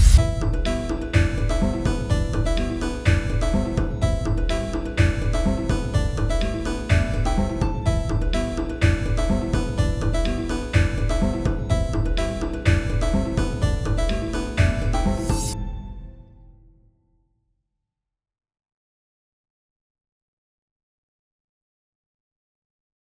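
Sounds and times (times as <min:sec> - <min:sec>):
instrumental music: 0:00.2 - 0:16.2.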